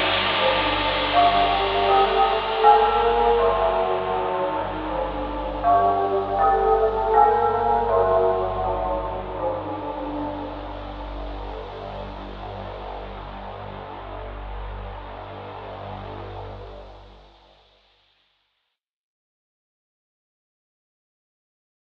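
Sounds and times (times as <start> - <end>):
music player: 0.0 - 17.4.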